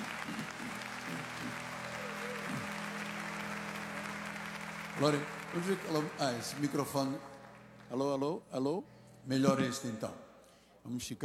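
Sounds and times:
church audience applauding: 0.0s - 8.4s
speech: 5.0s - 7.3s, 7.9s - 10.2s, 10.8s - 11.2s.

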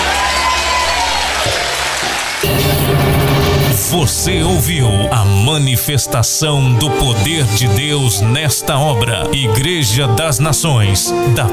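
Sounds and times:
faint cheering: 0.0s - 2.5s
audience applauding in a large room: 0.0s - 3.7s
speech: 3.9s - 11.5s.

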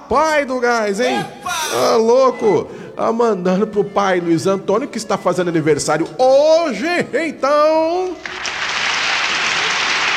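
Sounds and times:
speech: 0.1s - 8.4s
applause for a birthday dedication: 8.2s - 10.1s.

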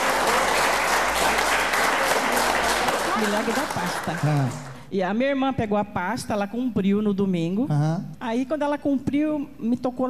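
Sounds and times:
church congregation applauding: 0.0s - 4.9s
speech: 3.2s - 10.0s.

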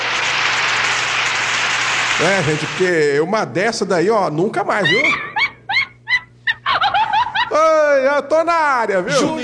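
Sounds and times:
audience applause: 0.0s - 3.1s
speech: 2.2s - 5.3s, 8.0s - 9.4s
laughter: 4.8s - 8.2s.

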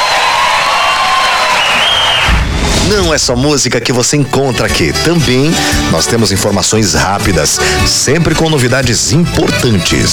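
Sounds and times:
audience applause at a concert being recorded for a DVD: 0.0s - 2.4s
speech: 2.9s - 10.1s.

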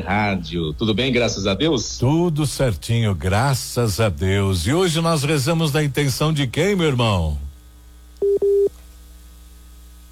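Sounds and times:
speech: 0.0s - 7.4s
faint low hum: 0.0s - 10.1s
telephone busy signal after a dropped call: 8.2s - 8.7s.

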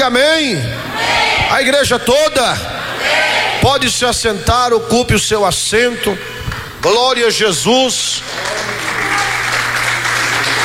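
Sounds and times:
speech: 0.0s - 9.4s
low steady hum: 0.0s - 9.8s
church congregation applauding: 8.3s - 10.6s.

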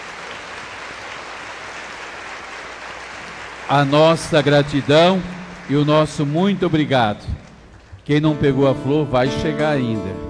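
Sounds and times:
audience applause: 0.0s - 8.3s
speech: 3.7s - 7.4s, 8.0s - 10.2s.

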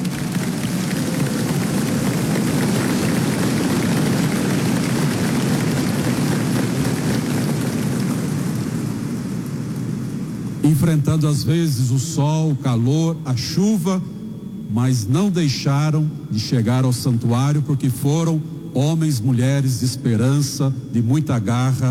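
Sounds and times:
audience applauding: 0.0s - 9.8s
speech: 10.7s - 21.9s.

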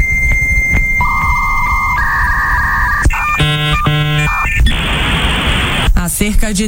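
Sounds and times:
dial-up modem connecting with beeps, handshake chirps and hiss: 0.0s - 5.9s.

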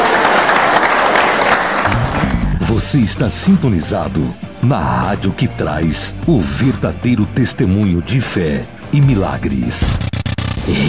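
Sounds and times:
church congregation applauding: 0.0s - 2.4s
speech: 2.8s - 10.8s.

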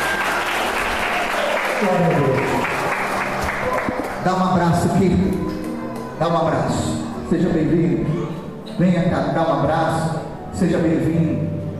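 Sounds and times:
audience applauding: 0.0s - 6.2s
speech: 1.8s - 2.8s, 4.2s - 5.6s, 6.2s - 8.2s, 8.8s - 11.5s.

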